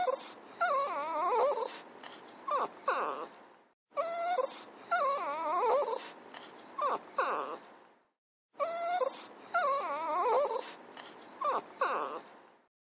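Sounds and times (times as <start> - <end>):
dog whimpering: 0.0 - 1.8, 2.4 - 3.4, 4.0 - 7.8, 8.6 - 12.5.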